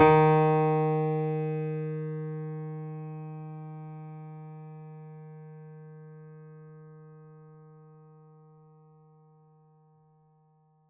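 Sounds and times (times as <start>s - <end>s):
mini grand piano: 0.0s - 7.6s.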